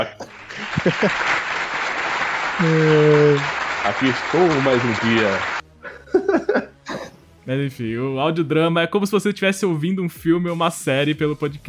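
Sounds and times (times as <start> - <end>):
laughter: 0.0 - 7.1
applause: 0.2 - 5.6
speech: 0.8 - 1.4, 2.6 - 5.6, 7.4 - 11.6.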